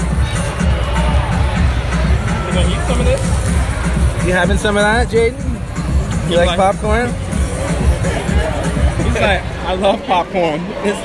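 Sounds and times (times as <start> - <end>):
crowd murmur at a baseball game: 0.0 - 11.0
speech: 4.3 - 5.5, 6.3 - 7.3, 9.2 - 11.0.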